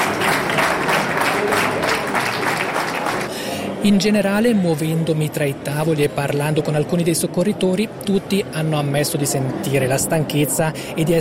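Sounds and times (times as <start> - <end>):
warm applause: 0.0 - 3.6
speech: 3.8 - 11.1.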